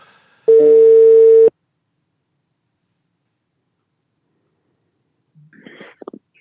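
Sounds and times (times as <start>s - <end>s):
phone ringback tone while placing a call: 0.5s - 1.5s.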